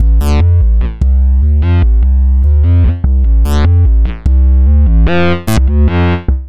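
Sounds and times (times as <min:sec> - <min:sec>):
synth bass: 0:00.0 - 0:06.4.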